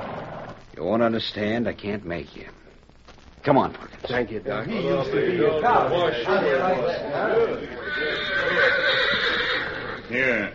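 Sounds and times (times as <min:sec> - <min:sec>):
speech: 0:00.8 - 0:02.6, 0:03.4 - 0:09.2, 0:10.1 - 0:10.5
horse whinnying: 0:07.8 - 0:10.5.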